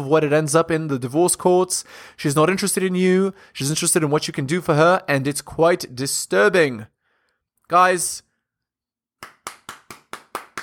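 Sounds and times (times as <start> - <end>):
speech: 0.0 - 7.0, 7.7 - 8.3
crisp hand claps as applause for a comment: 9.2 - 10.6.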